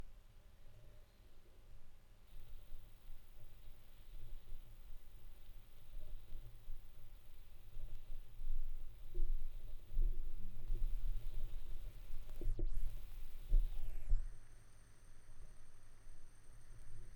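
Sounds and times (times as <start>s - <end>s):
vinyl record noise: 2.3s - 14.3s.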